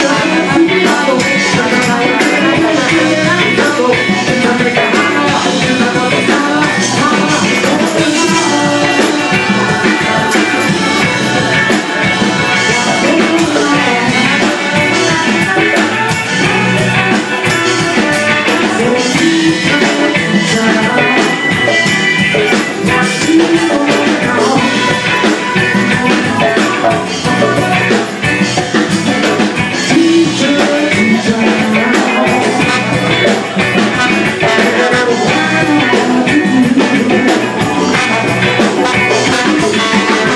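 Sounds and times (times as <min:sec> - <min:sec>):
band playing in Kilburn: 0:00.0 - 0:40.3.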